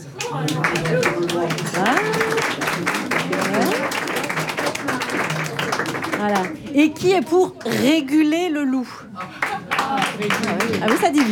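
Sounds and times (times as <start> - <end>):
room full of people clapping: 0.0 - 7.0, 9.2 - 11.3
speech: 0.3 - 3.0, 6.3 - 9.4, 10.2 - 11.3.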